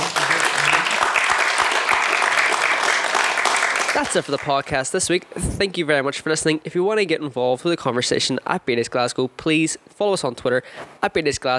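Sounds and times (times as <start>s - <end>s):
round of applause: 0.0s - 4.7s
speech: 4.0s - 11.5s.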